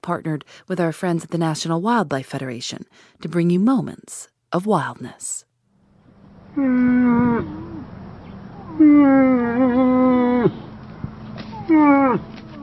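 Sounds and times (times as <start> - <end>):
speech: 0.0 - 5.5, 6.6 - 7.9, 8.8 - 10.6, 11.7 - 12.4
female moose moaning calls: 6.5 - 10.8, 11.4 - 12.6.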